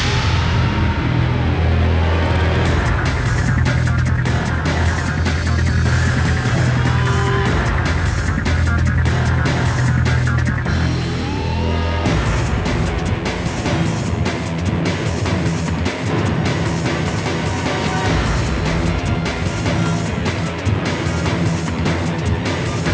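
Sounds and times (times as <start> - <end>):
battle background music: 0.1 - 22.9.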